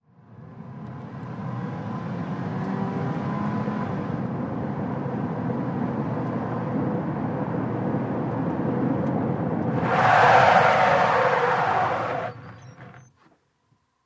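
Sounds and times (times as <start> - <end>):
small compact car accelerating: 0.6 - 13.1
small compact car tyres skidding: 9.0 - 13.1.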